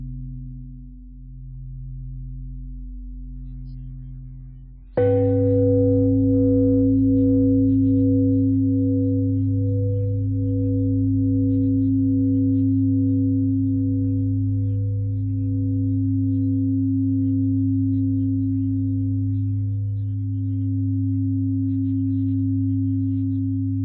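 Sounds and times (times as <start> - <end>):
pentatonic bell melody: 5.0 - 23.8.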